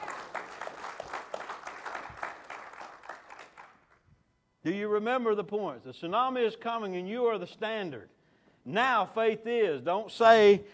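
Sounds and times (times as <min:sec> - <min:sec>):
audience hand clapping: 0:00.0 - 0:04.0
speech: 0:04.6 - 0:10.7.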